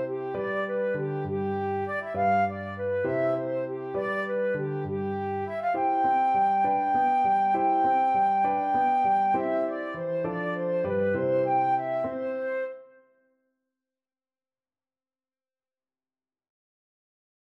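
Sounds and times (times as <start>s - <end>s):
flute playing a gigue in G major: 0.0s - 13.0s.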